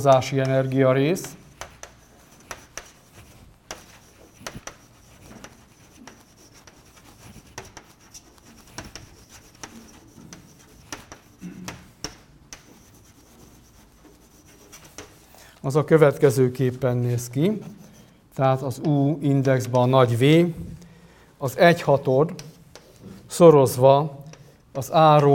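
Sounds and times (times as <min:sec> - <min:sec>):
speech: 0:00.0 - 0:01.4, 0:15.7 - 0:17.8, 0:18.4 - 0:20.8, 0:21.4 - 0:22.5, 0:23.3 - 0:24.2, 0:24.8 - 0:25.3
writing the final result of a derivation: 0:00.1 - 0:15.4, 0:22.4 - 0:23.2.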